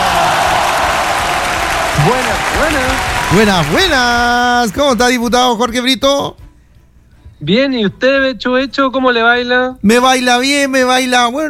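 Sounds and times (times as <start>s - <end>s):
applause: 0.0s - 4.4s
speech: 2.0s - 6.4s, 7.4s - 11.4s.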